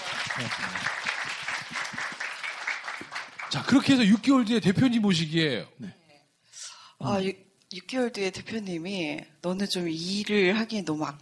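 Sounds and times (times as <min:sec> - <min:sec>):
audience applause: 0:00.0 - 0:04.2
speech: 0:00.4 - 0:01.0, 0:03.5 - 0:06.0, 0:07.0 - 0:11.2.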